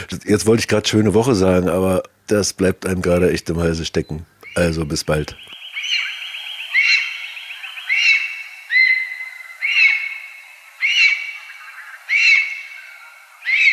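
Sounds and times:
speech: 0.0 - 5.6
lesser spotted eagle yelping calls: 4.4 - 13.7.

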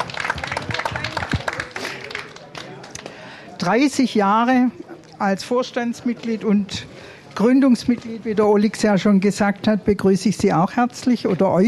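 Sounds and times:
audience applause: 0.0 - 3.1
speech: 3.6 - 11.6.

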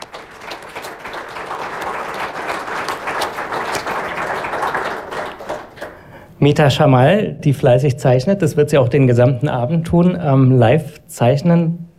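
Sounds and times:
audience applause: 0.0 - 6.1
speech: 6.4 - 11.8.

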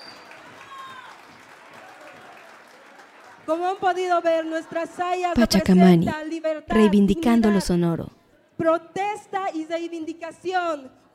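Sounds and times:
audience applause: 0.0 - 3.9
speech: 3.5 - 11.1.

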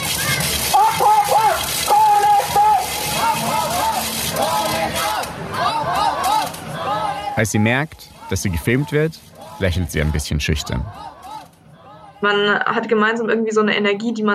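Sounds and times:
protest crowd chanting in the rain: 0.0 - 12.6
speech: 7.4 - 11.1, 12.2 - 14.3.

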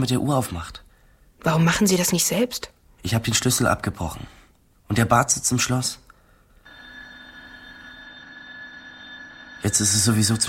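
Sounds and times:
speech: 0.0 - 0.8, 1.4 - 6.0, 9.6 - 10.4
electric school bell ringing: 6.6 - 10.4.

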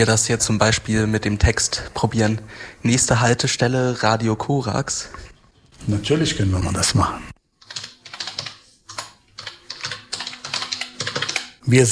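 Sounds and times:
speech: 0.0 - 7.3, 11.7 - 11.8
typing text on a computer keyboard: 7.6 - 11.6.

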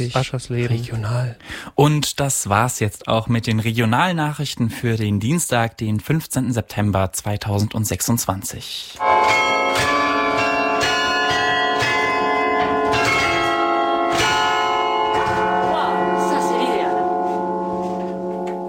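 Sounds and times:
speech: 0.0 - 10.0
church bells ringing: 9.0 - 18.6.

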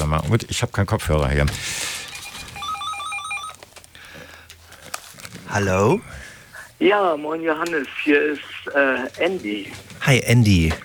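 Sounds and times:
speech: 0.1 - 1.8, 5.5 - 10.8
telephone ringing with electronic warbling trills: 1.8 - 3.6.

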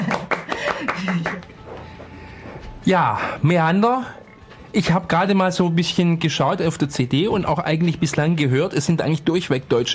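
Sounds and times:
hand claps: 0.0 - 1.8
speech: 2.8 - 9.9.

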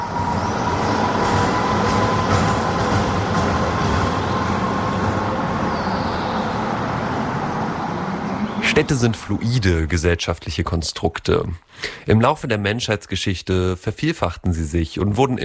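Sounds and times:
tram wheels' thin sustained metallic squeal on a curve: 0.0 - 9.1
tram wheels screeching and grinding on the rails: 0.0 - 9.8
tram rumbling: 0.0 - 11.5
speech: 8.8 - 15.4.

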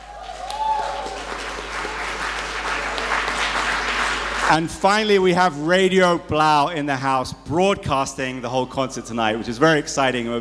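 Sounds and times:
audience applause: 0.0 - 5.3
speech: 4.5 - 10.3.

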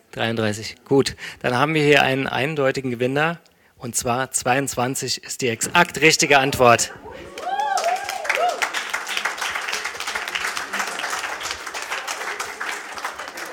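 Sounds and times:
speech: 0.1 - 7.4
cheers and whoops: 7.0 - 9.2
crowd applause: 7.0 - 13.5.

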